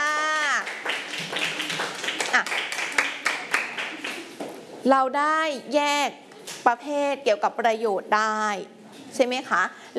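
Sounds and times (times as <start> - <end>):
classroom applause: 0.0 - 4.4
speech: 2.4 - 2.6, 4.8 - 9.9.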